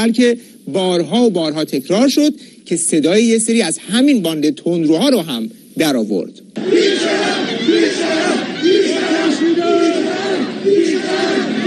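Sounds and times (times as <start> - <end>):
speech: 0.0 - 7.8
large crowd chanting political slogans at a funeral: 6.6 - 11.6.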